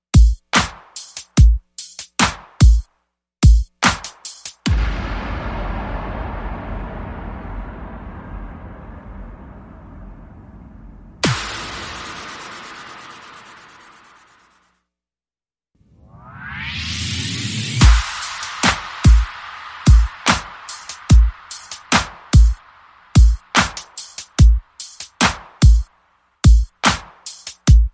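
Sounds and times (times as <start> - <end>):
drums: 0.0 - 14.4, 16.3 - 27.9
sound effects: 4.7 - 14.8.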